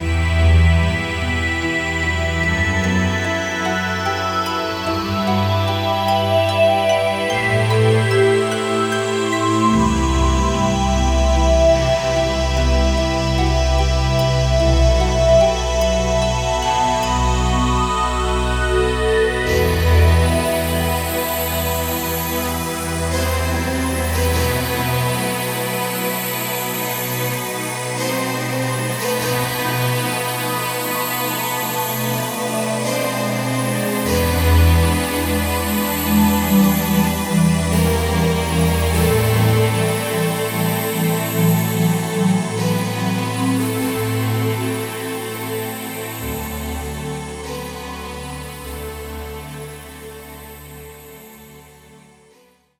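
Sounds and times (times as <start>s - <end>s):
music for relaxation: 0.0s - 52.7s.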